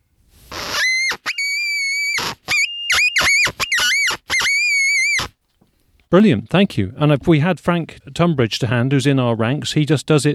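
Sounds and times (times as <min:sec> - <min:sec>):
fox caller blown in high-pitched wailing squeals: 0:00.5 - 0:05.4
speech: 0:06.1 - 0:10.3.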